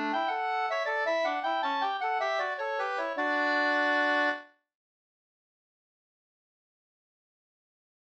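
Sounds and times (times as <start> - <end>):
polska folk dance tune: 0.0 - 4.4.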